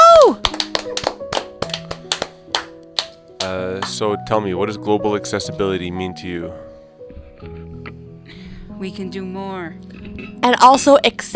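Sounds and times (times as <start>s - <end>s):
sparse audience hand claps: 0.2s - 4.0s
speech: 4.0s - 6.7s, 7.4s - 7.6s, 8.8s - 11.3s.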